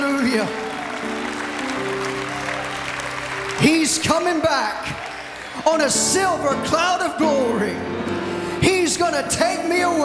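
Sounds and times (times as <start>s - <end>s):
church congregation clapping hands in praise: 0.0s - 7.3s
speech: 0.2s - 0.6s, 3.6s - 10.0s.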